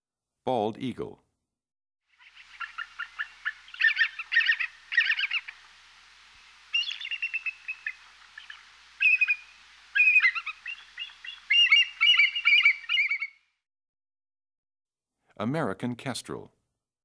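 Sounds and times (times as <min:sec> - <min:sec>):
Cooper's Hawk Northern Goshawk Red-tailed Hawk Red-shouldered Hawk Broad-winged Hawk calls: 0:02.1 - 0:13.4.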